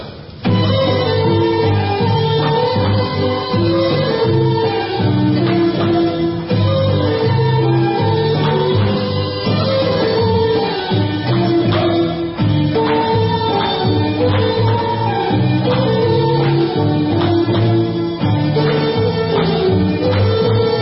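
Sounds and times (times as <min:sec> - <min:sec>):
Bulgarian instrumental music: 0:00.4 - 0:20.8.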